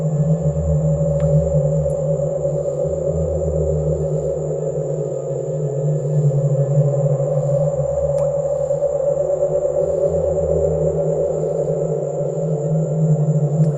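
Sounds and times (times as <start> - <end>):
eerie night ambience: 0.0 - 13.7.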